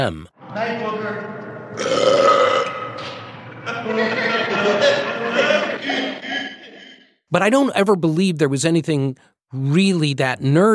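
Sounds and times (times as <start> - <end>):
speech: 0.0 - 2.4, 3.8 - 5.6, 7.3 - 10.7
loud belch: 1.8 - 3.2
laughter: 3.6 - 7.0.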